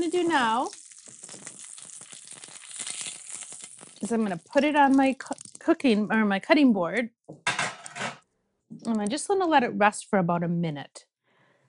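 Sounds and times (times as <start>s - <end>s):
speech: 0.0s - 0.8s, 4.0s - 7.4s, 8.8s - 11.1s
seared tuna crackling and sizzling in a hot pan: 0.0s - 5.8s.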